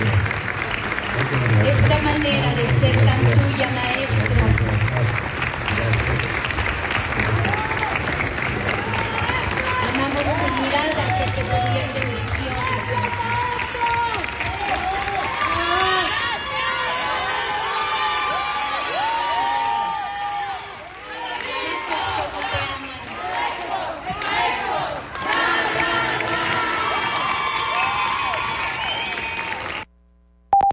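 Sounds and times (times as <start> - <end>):
large indoor theatre crowd applauding: 0.0 - 29.9
speech: 1.3 - 6.3, 10.2 - 13.9
theatre audience cheering and shouting: 5.7 - 29.8.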